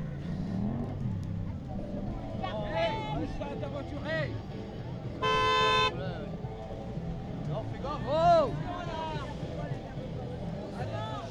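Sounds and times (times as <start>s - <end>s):
cars rolling past a protesters' road blockade in Sotteville-lès-Rouen: 0.0s - 11.2s
crowd chattering and calling out: 0.0s - 11.2s
loud car horn blaring: 5.2s - 6.0s.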